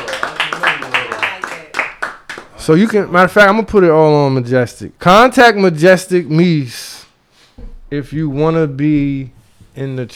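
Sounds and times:
rhythmic clapping: 0:00.0 - 0:03.0
speech: 0:02.6 - 0:06.9, 0:07.6 - 0:10.1.

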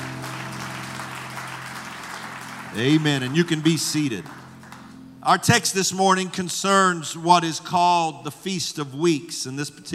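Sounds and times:
audience clapping in praise: 0:00.0 - 0:05.2
speech: 0:02.7 - 0:04.4, 0:05.2 - 0:09.9.

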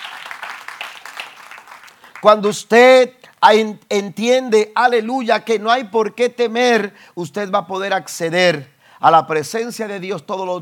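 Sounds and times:
loud audience applause: 0:00.0 - 0:02.4
speech: 0:02.2 - 0:10.6.

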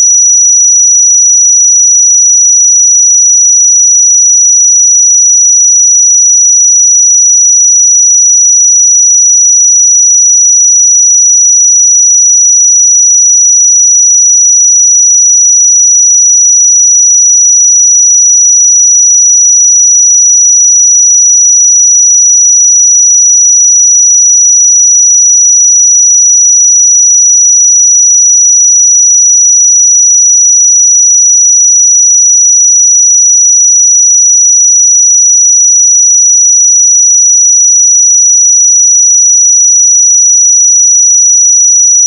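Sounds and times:
pure sine tone at 5863 Hz: 0:00.0 - 0:42.0.

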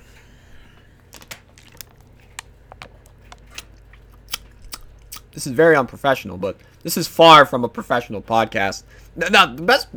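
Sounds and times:
drinking water: 0:01.6 - 0:05.3
speech: 0:05.3 - 0:09.9.

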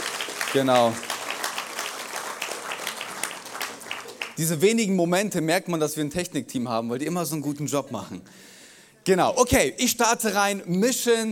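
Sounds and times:
audience applause: 0:00.0 - 0:04.4
speech: 0:00.5 - 0:01.1, 0:04.4 - 0:08.4, 0:09.0 - 0:11.3.

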